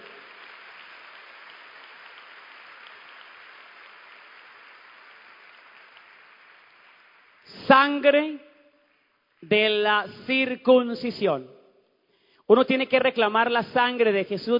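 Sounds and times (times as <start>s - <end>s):
audience applauding: 0.0s - 7.5s
speech: 7.7s - 8.5s, 9.4s - 11.6s, 12.5s - 14.5s.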